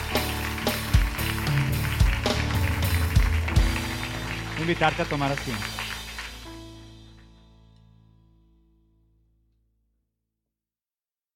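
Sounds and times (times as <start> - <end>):
audience applause: 0.0 - 7.3
low sustained musical tones: 0.0 - 7.8
speech: 4.7 - 5.8.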